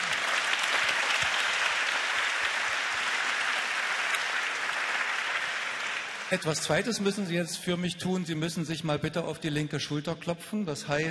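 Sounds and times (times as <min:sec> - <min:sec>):
large audience applause in a hall: 0:00.0 - 0:06.8
speech: 0:06.3 - 0:11.0.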